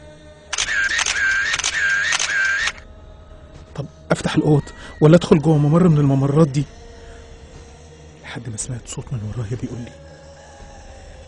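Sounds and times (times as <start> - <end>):
camera shutter firing flash photos in dark corridors: 0.5 - 2.8
high steady electronic whine from the camera flash recharging: 0.6 - 2.8
speech: 3.8 - 6.8, 8.4 - 10.2.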